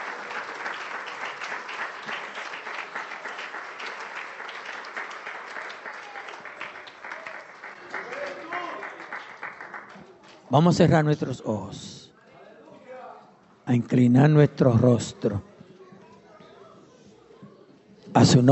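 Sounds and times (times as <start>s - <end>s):
audience applause: 0.0s - 10.1s
speech: 10.5s - 12.0s, 13.7s - 15.5s, 18.2s - 18.4s.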